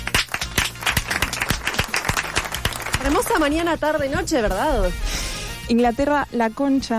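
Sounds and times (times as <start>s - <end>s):
small group clapping live: 0.0s - 3.6s
speech: 3.2s - 6.9s.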